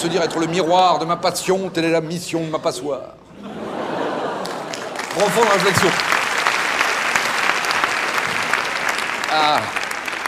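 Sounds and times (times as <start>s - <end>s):
laughter: 0.0s - 1.4s, 2.6s - 6.0s
speech: 0.0s - 3.6s, 5.2s - 6.2s, 9.3s - 9.8s
audience applause: 4.2s - 10.2s.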